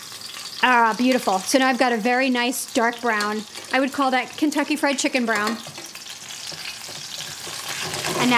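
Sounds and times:
cutlets frying in a pan: 0:00.0 - 0:08.3
speech: 0:00.6 - 0:05.8.

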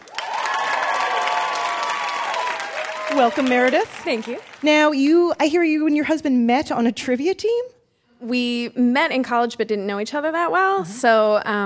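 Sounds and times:
audience applause: 0:00.0 - 0:04.9
speech: 0:03.2 - 0:11.6.

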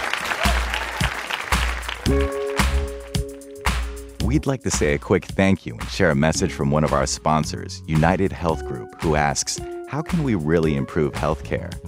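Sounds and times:
live audience applause: 0:00.0 - 0:03.2
speech: 0:04.3 - 0:11.8.

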